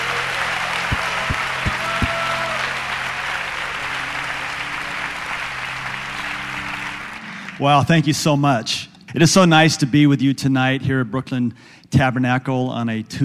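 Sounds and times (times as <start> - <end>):
church congregation applause welcoming a guest pastor at a Tuesday evening prayer service: 0.0 - 8.4
speech: 7.6 - 13.2.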